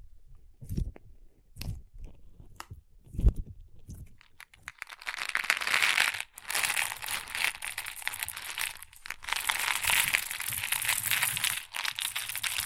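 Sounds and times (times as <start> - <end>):
crunchy slime being handled, squishing and crackling: 3.9 - 12.6.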